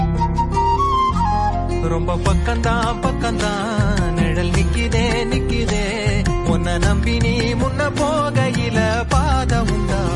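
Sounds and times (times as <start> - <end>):
Tamil song: 0.0 - 10.1.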